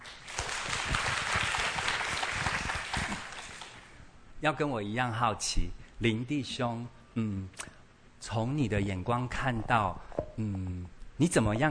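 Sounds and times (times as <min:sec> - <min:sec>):
warm audience applause: 0:00.0 - 0:03.9
speech: 0:04.4 - 0:07.6, 0:08.2 - 0:11.6.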